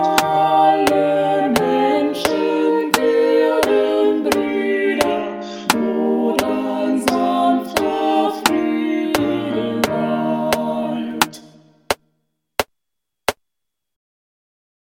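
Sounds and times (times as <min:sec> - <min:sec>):
classical choir singing: 0:00.0 - 0:11.6.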